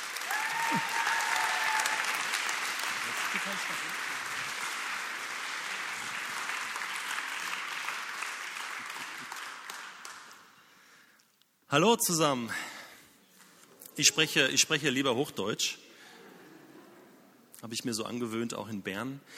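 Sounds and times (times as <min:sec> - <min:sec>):
audience applause: 0:00.0 - 0:10.5
speech: 0:00.7 - 0:00.9, 0:11.8 - 0:12.7, 0:14.0 - 0:15.8, 0:17.6 - 0:19.3.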